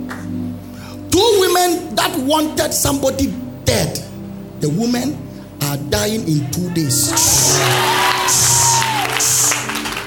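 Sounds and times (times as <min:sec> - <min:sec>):
speech: 0:02.0 - 0:04.0, 0:04.6 - 0:08.8
sustained tones: 0:05.6 - 0:10.0
audience clapping: 0:07.1 - 0:10.0.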